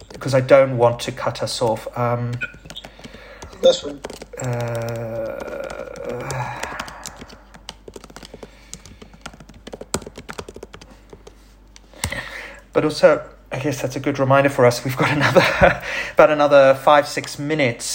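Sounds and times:
light taps typing a short text message on a phone: 0.0s - 0.5s, 2.0s - 12.2s
speech: 0.2s - 2.6s, 3.6s - 6.6s, 12.8s - 17.9s
laughter: 14.9s - 16.0s.

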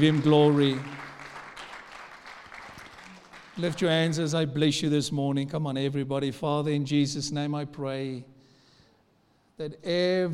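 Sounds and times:
speech: 0.0s - 1.0s, 3.6s - 8.3s, 9.6s - 10.3s
audience clapping: 0.0s - 4.2s.

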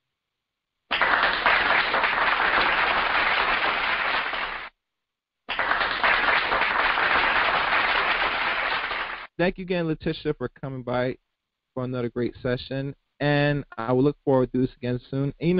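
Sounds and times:
round of applause: 0.9s - 4.7s, 5.5s - 9.4s
speech: 9.4s - 15.5s.

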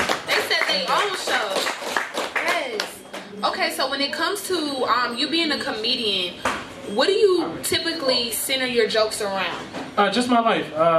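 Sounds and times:
hands clapping: 0.0s - 3.3s
speech: 3.6s - 10.9s.

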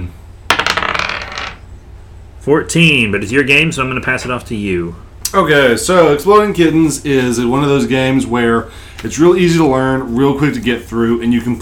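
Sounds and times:
dice rolling on table: 0.5s - 1.6s
speech: 2.4s - 11.6s.

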